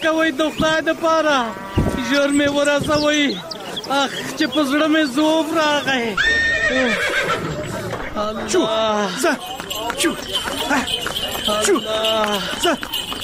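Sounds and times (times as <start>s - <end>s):
speech: 0.0s - 7.5s, 8.2s - 13.0s
horse hitched to a buggy neighing: 6.1s - 7.7s.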